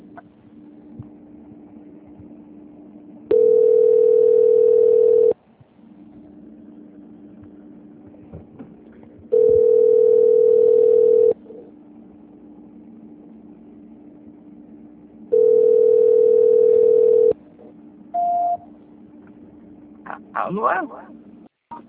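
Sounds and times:
low hum: 0.0s - 21.8s
telephone tone while a call is transferred: 3.3s - 5.4s, 9.4s - 11.4s, 15.4s - 17.4s, 18.2s - 18.6s.

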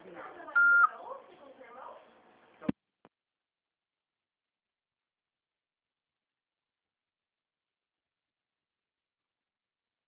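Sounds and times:
voicemail beep: 0.6s - 0.9s.

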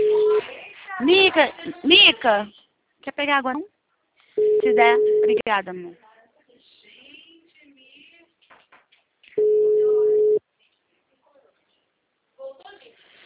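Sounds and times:
telephone line beep while calling a client: 0.0s - 0.4s, 4.4s - 5.5s, 9.4s - 10.4s
speech: 1.0s - 3.8s, 4.6s - 6.0s.

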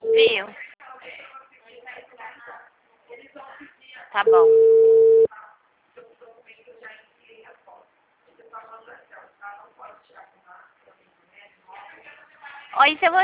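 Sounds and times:
speech: 4.2s - 4.6s
telephone busy tone after a dropped call: 4.3s - 5.3s.

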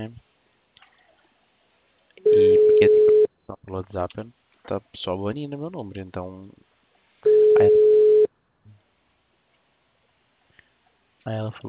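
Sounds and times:
speech: 0.0s - 0.2s, 3.7s - 6.7s, 7.6s - 7.8s, 11.2s - 11.6s
telephone busy signal: 2.2s - 3.3s, 7.3s - 8.3s.

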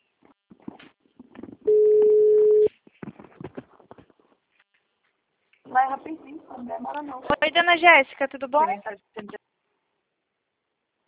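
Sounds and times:
telephone ringing tone while placing a call: 1.7s - 2.7s
speech: 6.1s - 9.4s.

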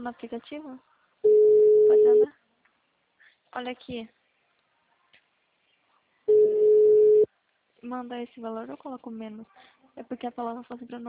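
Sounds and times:
speech: 0.0s - 2.4s, 3.5s - 4.2s, 7.8s - 11.0s
phone ringback tone of an unanswered call: 1.2s - 2.3s, 6.3s - 7.3s.

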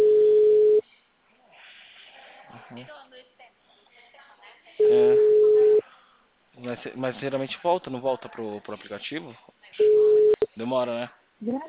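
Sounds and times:
telephone call ringing unanswered: 0.0s - 0.8s, 4.8s - 5.8s, 9.8s - 10.5s
speech: 2.8s - 3.0s, 6.8s - 9.8s, 10.6s - 11.6s.

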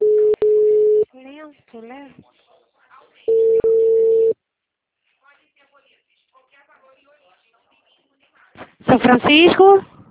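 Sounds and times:
telephone line tone as a call drops: 0.0s - 1.0s, 3.3s - 4.4s
speech: 1.7s - 2.5s, 8.9s - 9.9s.

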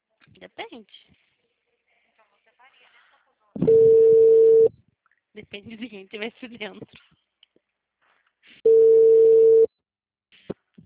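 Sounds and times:
speech: 0.4s - 1.3s, 5.4s - 7.1s
telephone ringing tone on an unanswered call: 3.7s - 4.7s, 8.7s - 9.7s.

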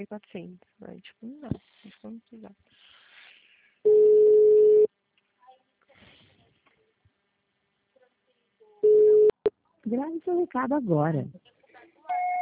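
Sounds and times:
speech: 0.0s - 3.0s, 3.8s - 4.4s, 9.8s - 11.5s
telephone busy signal: 3.9s - 4.9s, 8.8s - 9.5s, 12.1s - 12.4s.

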